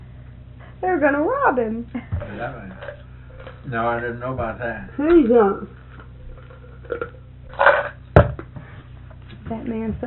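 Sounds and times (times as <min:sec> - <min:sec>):
speech: 0:00.8 - 0:05.8, 0:06.9 - 0:07.2, 0:09.5 - 0:10.0
crunching food while chewing: 0:02.8 - 0:03.7, 0:05.7 - 0:08.1.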